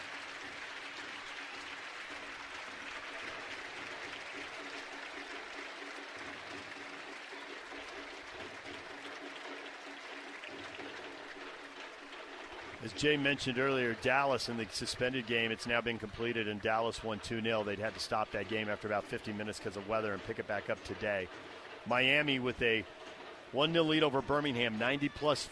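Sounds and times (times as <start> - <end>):
large stadium crowd applause: 0.0 - 25.5
speech: 12.8 - 25.5.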